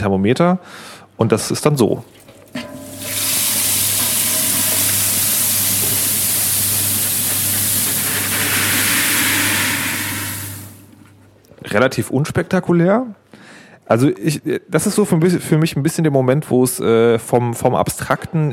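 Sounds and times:
speech: 0.0 - 2.3, 11.7 - 13.3, 13.9 - 18.5
malt pouring into hot water: 2.2 - 11.0.

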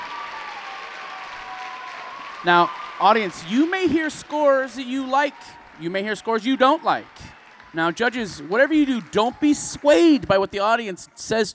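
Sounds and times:
steady applause from an audience: 0.0 - 11.3
speech: 2.4 - 11.5.

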